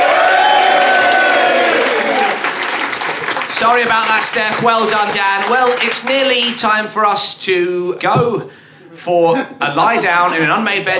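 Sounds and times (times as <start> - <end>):
audience applause: 0.0 - 6.6
speech: 3.6 - 10.9.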